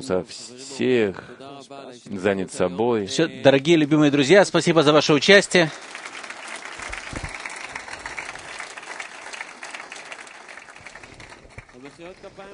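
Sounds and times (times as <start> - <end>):
speech: 0.0 - 6.1
audience applause: 4.6 - 12.5.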